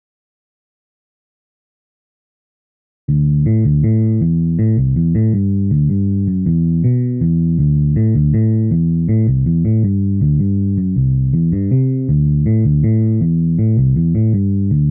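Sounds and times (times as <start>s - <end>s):
bass music: 3.1s - 14.8s.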